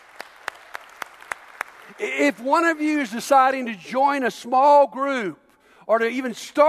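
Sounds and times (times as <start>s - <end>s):
audience clapping: 0.0s - 3.0s
speech: 1.9s - 6.6s.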